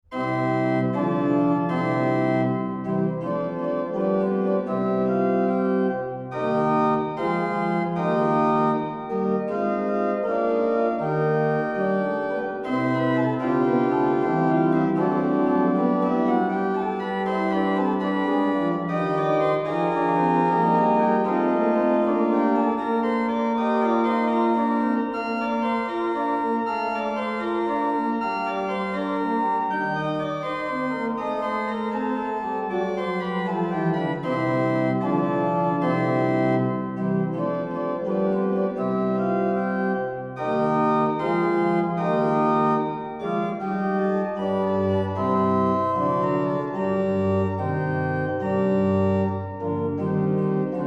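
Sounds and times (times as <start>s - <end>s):
organ prelude in C played by organist: 0.0s - 50.8s.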